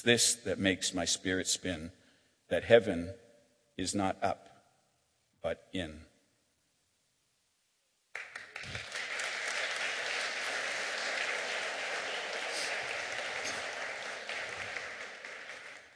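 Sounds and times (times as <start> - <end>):
speech: 0.0 - 3.2, 3.8 - 4.5, 5.4 - 6.1
audience applause: 8.2 - 15.9.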